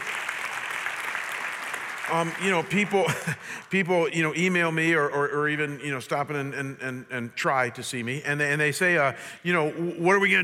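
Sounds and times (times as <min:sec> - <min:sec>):
audience clapping: 0:00.0 - 0:03.7
speech: 0:02.1 - 0:10.4
laughter: 0:02.8 - 0:03.7.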